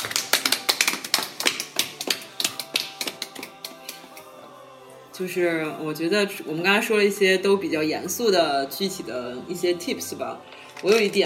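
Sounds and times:
clapping: 0.0 - 4.3
speech: 5.2 - 11.2.

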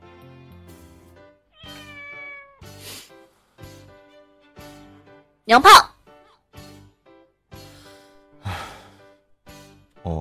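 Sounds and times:
cat meowing: 1.5 - 2.7
speech: 5.5 - 5.9.

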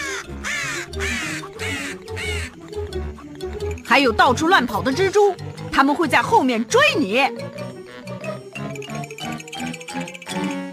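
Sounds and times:
crows cawing: 0.0 - 2.7
speech: 4.0 - 7.4.

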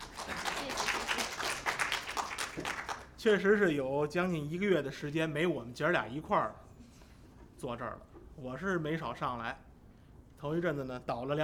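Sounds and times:
crowd applauding: 0.0 - 3.1
speech: 3.2 - 6.7, 7.6 - 9.7, 10.4 - 11.4.

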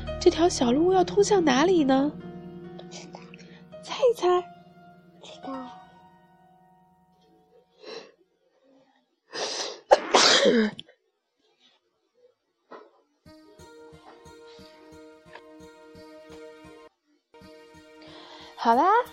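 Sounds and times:
speech: 0.2 - 2.2, 4.0 - 4.5, 10.4 - 10.8, 18.6 - 19.1
loud sneeze: 9.4 - 10.8.

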